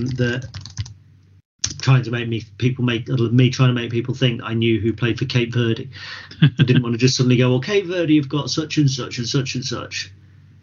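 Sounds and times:
speech: 0:00.0 - 0:00.6, 0:01.8 - 0:10.2
computer keyboard keys struck hard: 0:00.0 - 0:00.9.

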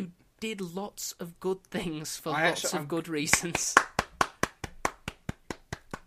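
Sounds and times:
speech: 0:00.0 - 0:03.9
one person clapping hands: 0:03.3 - 0:06.0.

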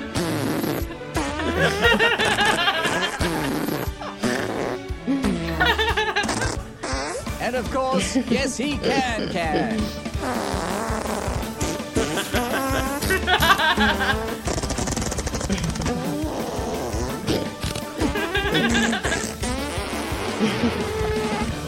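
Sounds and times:
march played with fart sounds: 0:00.0 - 0:21.6
laughter: 0:01.3 - 0:04.5, 0:05.3 - 0:06.6, 0:12.0 - 0:14.4, 0:18.0 - 0:19.4, 0:20.4 - 0:21.4
speech: 0:01.6 - 0:02.2, 0:07.5 - 0:10.6.

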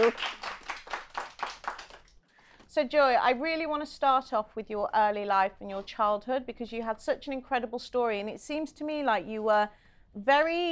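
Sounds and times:
speech: 0:00.0 - 0:00.4, 0:02.8 - 0:10.7
audience applause: 0:00.0 - 0:02.1.

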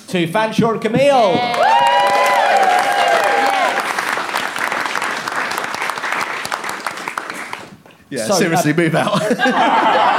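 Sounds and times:
speech: 0:00.1 - 0:01.8, 0:08.1 - 0:10.1
cheering: 0:01.4 - 0:04.1
applause: 0:01.5 - 0:08.0
laughter: 0:08.5 - 0:10.1.

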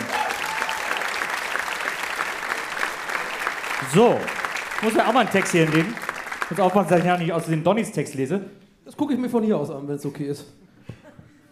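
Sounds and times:
audience applause: 0:00.0 - 0:07.6
speech: 0:03.9 - 0:10.6.

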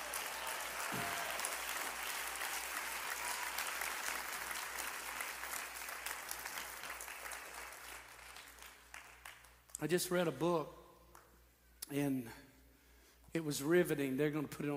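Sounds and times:
audience applause: 0:00.0 - 0:09.6
speech: 0:09.8 - 0:10.8, 0:11.9 - 0:12.5, 0:13.3 - 0:14.7.

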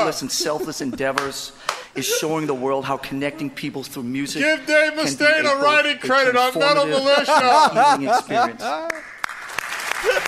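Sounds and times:
laughter: 0:00.0 - 0:09.0, 0:10.0 - 0:10.2
speech: 0:00.0 - 0:09.1
clapping: 0:08.8 - 0:10.2.

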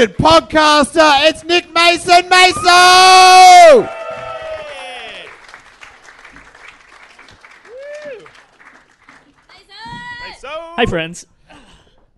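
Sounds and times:
speech: 0:00.0 - 0:04.0, 0:10.8 - 0:11.3
audience applause: 0:03.6 - 0:09.8.

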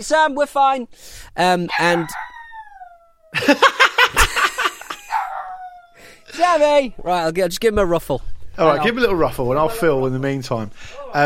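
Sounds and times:
speech: 0:00.0 - 0:02.2, 0:03.3 - 0:04.2, 0:06.4 - 0:11.2
young dog giving a little baby howl: 0:01.7 - 0:03.4, 0:05.0 - 0:06.0
laughter: 0:03.3 - 0:05.4.

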